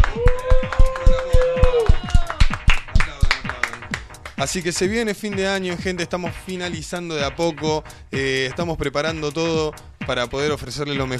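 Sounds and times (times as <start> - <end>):
studio audience at a radio program applauding: 0.0 - 4.7
speech: 4.4 - 11.1.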